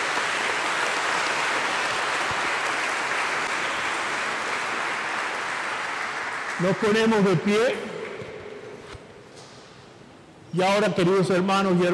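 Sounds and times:
audience applauding: 0.0 - 7.4
speech: 6.6 - 7.9, 10.5 - 11.9.

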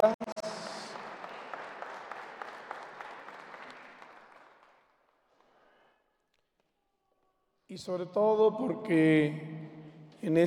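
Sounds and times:
speech: 0.0 - 0.3, 7.7 - 9.6, 10.2 - 10.4
applause: 0.0 - 6.7.

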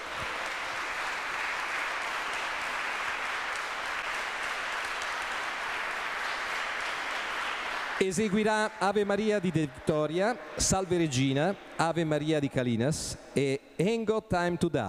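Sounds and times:
audience applause: 0.0 - 8.7
speech: 8.0 - 14.8.

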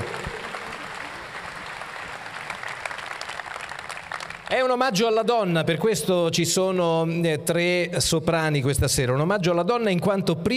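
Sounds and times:
audience applause for orchestra: 0.0 - 4.6
speech: 4.5 - 10.5.

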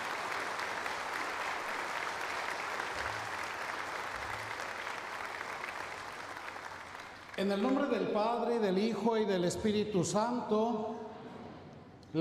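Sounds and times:
audience applauding: 0.0 - 8.4
speech: 7.4 - 11.0.

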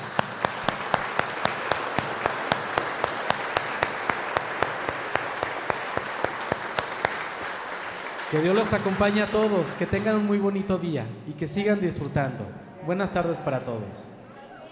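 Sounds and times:
audience applauding: 0.0 - 10.3
speech: 8.3 - 14.2.

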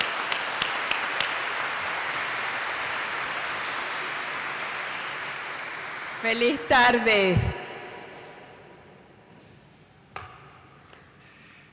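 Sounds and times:
audience applause: 0.0 - 6.6
speech: 6.2 - 7.6.

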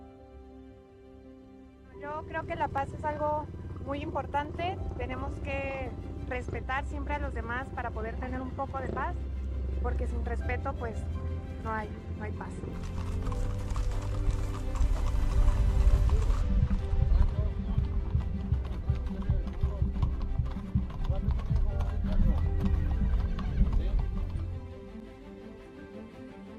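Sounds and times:
speech: 2.0 - 13.6
horses' hooves clip-clopping: 2.1 - 11.0, 11.7 - 25.1
horse neighing: 12.5 - 24.5.

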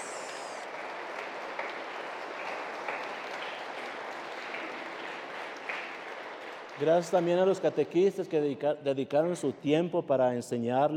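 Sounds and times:
crowd applauding in a large room: 0.0 - 7.7
speech: 6.8 - 10.9.

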